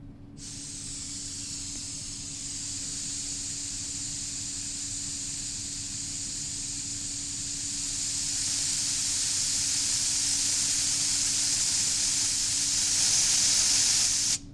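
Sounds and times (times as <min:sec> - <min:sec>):
air compressor: 0:00.0 - 0:14.4.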